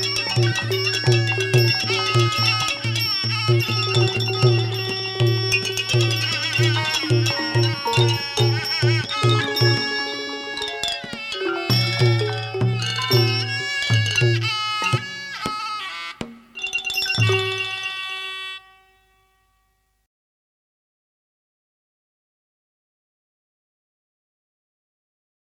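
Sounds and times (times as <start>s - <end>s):
Thai classical piphat ensemble: 0.0s - 18.5s.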